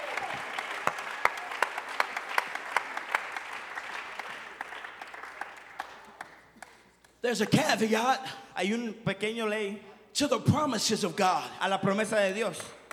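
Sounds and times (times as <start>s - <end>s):
audience clapping hands: 0.0s - 7.9s, 12.4s - 12.9s
speech: 7.2s - 12.8s.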